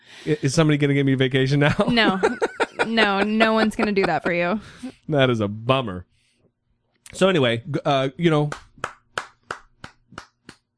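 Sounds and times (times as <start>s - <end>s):
speech: 0.2s - 6.1s, 7.1s - 8.6s
laughter: 1.7s - 4.9s
person clapping hands: 8.4s - 10.7s.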